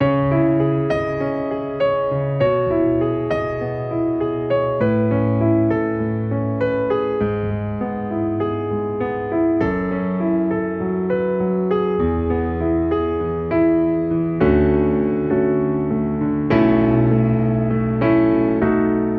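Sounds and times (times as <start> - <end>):
emotional piano music in A at 100 bpm: 0.0 - 19.1.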